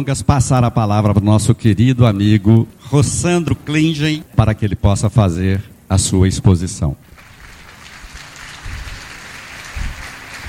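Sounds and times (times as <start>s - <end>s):
speech: 0.0s - 7.2s
audience applause welcoming speaker: 7.0s - 10.4s.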